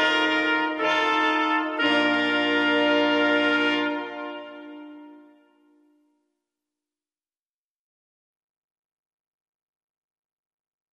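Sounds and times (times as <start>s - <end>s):
music: 0.0s - 7.1s.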